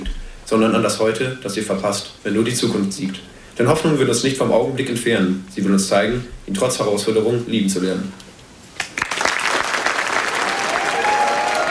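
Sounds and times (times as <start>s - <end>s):
speech: 0.5s - 8.2s
audience applause: 8.8s - 11.6s.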